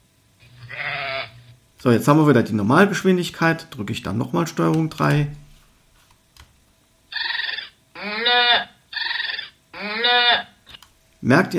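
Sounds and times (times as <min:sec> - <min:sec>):
speech: 0:01.8 - 0:05.4, 0:11.2 - 0:11.5
four sped-up farm animal calls, buzzy cries and tonal calls: 0:07.1 - 0:10.6.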